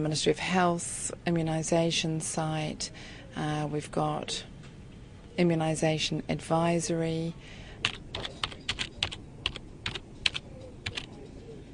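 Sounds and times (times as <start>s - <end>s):
speech: 0.0s - 4.5s, 5.4s - 8.4s
typing on a computer keyboard: 7.8s - 11.1s.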